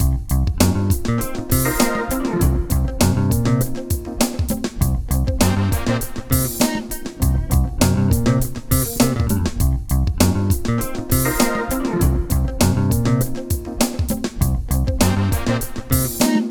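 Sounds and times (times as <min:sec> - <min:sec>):
cool jazz bass groove: 0:00.0 - 0:16.3.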